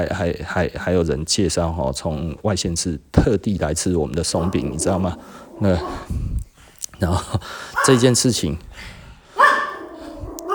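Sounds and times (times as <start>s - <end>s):
speech: 0.0s - 6.3s, 7.0s - 9.0s
dog barking: 4.4s - 6.1s, 7.7s - 8.3s, 9.4s - 10.5s.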